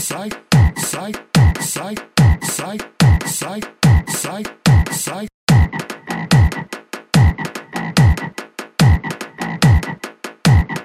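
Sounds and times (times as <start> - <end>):
speech: 0.1 - 5.4
frog croaking in a looped rhythm: 6.0 - 6.7, 7.7 - 8.2, 9.4 - 9.9.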